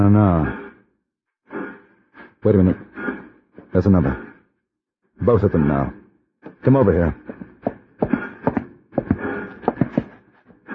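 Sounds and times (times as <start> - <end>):
speech: 0.0 - 0.6, 2.4 - 4.3, 5.2 - 8.2
horse hooves clopping: 7.2 - 10.6.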